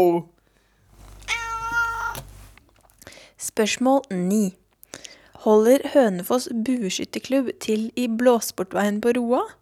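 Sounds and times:
speech: 0:00.0 - 0:00.3, 0:03.5 - 0:04.6, 0:05.4 - 0:09.6
cat meowing: 0:01.1 - 0:02.3.

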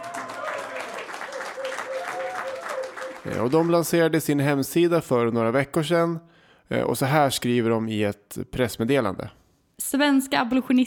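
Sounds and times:
applause: 0:00.0 - 0:04.4
speech: 0:03.2 - 0:10.8.

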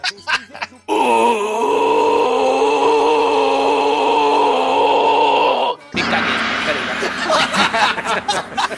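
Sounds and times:
laughter: 0:00.0 - 0:01.0, 0:06.0 - 0:08.7
person imitating a deep-voiced scream: 0:00.9 - 0:05.9.

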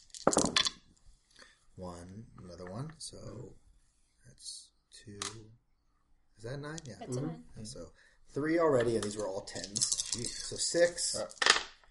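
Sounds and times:
dice clattering on a hard surface: 0:00.0 - 0:00.8, 0:09.0 - 0:11.8
speech: 0:01.8 - 0:03.6, 0:04.3 - 0:05.6, 0:06.4 - 0:11.6.

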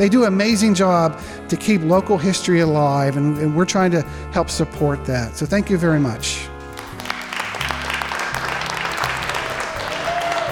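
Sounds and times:
speech: 0:00.0 - 0:06.5
audience applause: 0:06.8 - 0:10.5.

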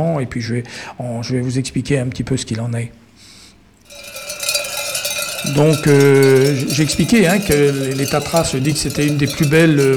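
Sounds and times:
speech: 0:00.0 - 0:03.0, 0:05.4 - 0:09.9
bells worn by grazing sheep in the mountains: 0:03.9 - 0:09.9.

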